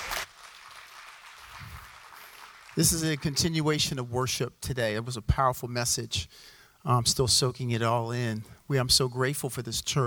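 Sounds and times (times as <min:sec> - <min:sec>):
audience applause: 0:00.0 - 0:03.4
speech: 0:02.8 - 0:10.0.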